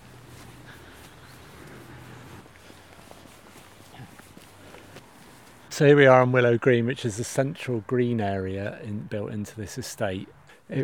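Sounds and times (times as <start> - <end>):
footsteps walking along an estate road: 0.0 - 5.7
outdoor noise: 0.0 - 10.8
speech: 5.8 - 10.8.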